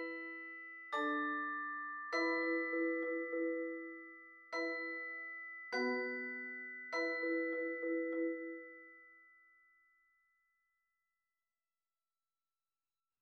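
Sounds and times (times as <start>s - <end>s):
mallet percussion accompaniment: 0.0s - 9.2s.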